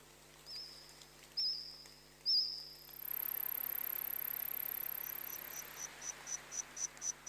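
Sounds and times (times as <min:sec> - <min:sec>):
insects chirping and trilling in forest: 0:00.4 - 0:07.2
steady high whine: 0:02.8 - 0:07.2.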